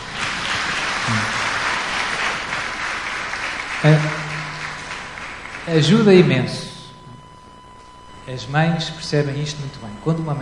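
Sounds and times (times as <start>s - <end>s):
audience clapping: 0.0s - 6.7s
speech: 3.8s - 4.1s, 5.7s - 6.7s, 8.4s - 10.3s.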